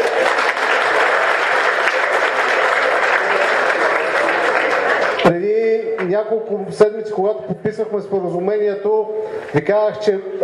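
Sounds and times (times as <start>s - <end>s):
audience clapping: 0.0s - 6.3s
speech: 5.2s - 10.4s.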